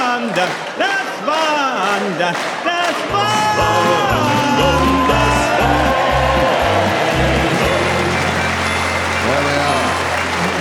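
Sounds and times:
man singing a German folk song: 0:00.0 - 0:05.9
audience in Hull clapping along in time: 0:00.0 - 0:10.5
speech: 0:00.4 - 0:01.5, 0:02.1 - 0:04.0.

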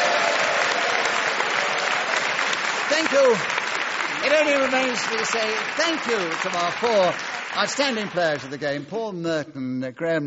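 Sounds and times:
audience applause at a game show: 0:00.0 - 0:09.0
speech: 0:03.0 - 0:10.2.

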